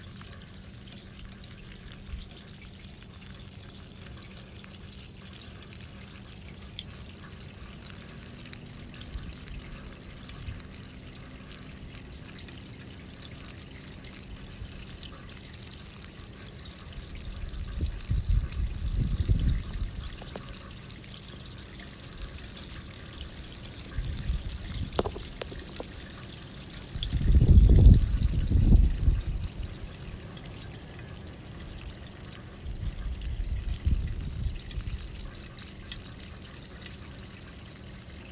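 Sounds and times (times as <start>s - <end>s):
trickling and pouring water: 0.0s - 38.3s
rain-like white noise hiss: 19.9s - 30.4s.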